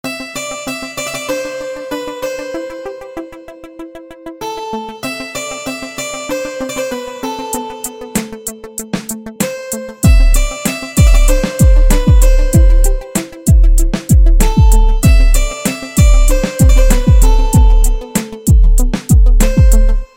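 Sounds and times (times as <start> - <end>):
guitar: 0.0 - 20.1
bass: 10.0 - 20.1.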